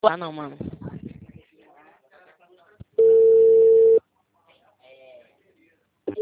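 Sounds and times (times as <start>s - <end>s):
telephone tone after a dropped call: 3.0s - 4.0s.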